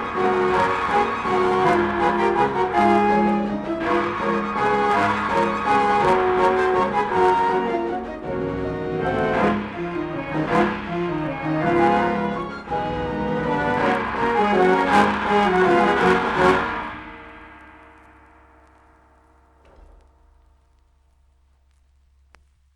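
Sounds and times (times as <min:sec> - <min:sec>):
orchestrion playing: 0:00.0 - 0:17.9.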